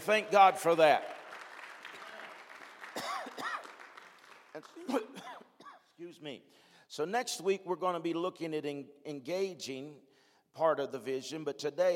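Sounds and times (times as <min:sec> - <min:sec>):
speech: 0:00.0 - 0:01.1, 0:04.6 - 0:05.3, 0:06.0 - 0:11.9
crowd clapping in a large room: 0:00.0 - 0:05.0.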